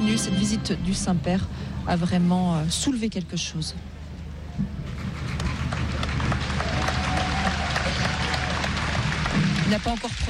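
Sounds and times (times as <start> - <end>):
speech: 0.2 - 4.0, 4.6 - 5.0, 9.7 - 10.2
large crowd applauding: 5.2 - 10.2.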